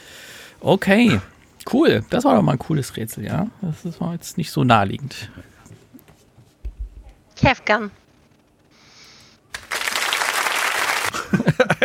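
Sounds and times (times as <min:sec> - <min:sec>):
speech: 0:00.6 - 0:05.5, 0:07.4 - 0:08.0
applause: 0:09.5 - 0:11.3
laughter: 0:11.0 - 0:11.8.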